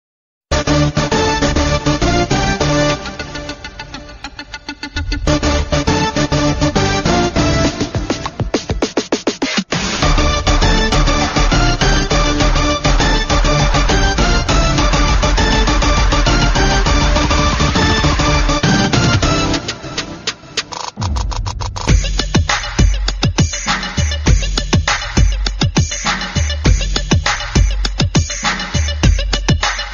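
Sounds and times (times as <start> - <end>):
interval background music: 0.5 - 29.9.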